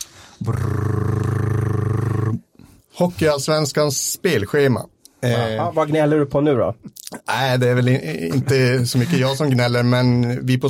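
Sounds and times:
speech: 0.4s - 0.8s, 3.0s - 10.6s
voice imitating a drum roll: 0.4s - 2.4s.

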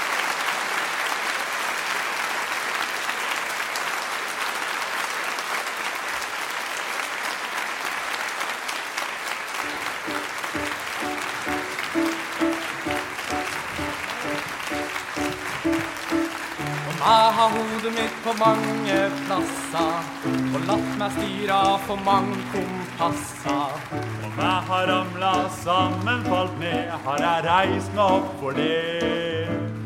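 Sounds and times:
audience applause: 0.0s - 29.8s
music: 9.6s - 29.8s
speech: 17.5s - 29.8s.

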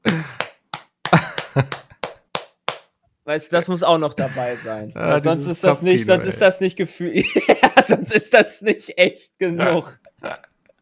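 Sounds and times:
hand slapping on belly: 0.0s - 3.0s
speech: 1.1s - 1.8s, 3.3s - 10.5s
laughter: 7.1s - 8.8s.

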